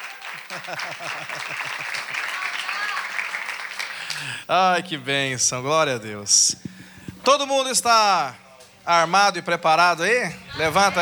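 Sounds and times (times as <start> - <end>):
audience applause: 0.0 - 4.4
laughter: 0.4 - 2.2
speech: 0.5 - 2.5, 4.2 - 11.0.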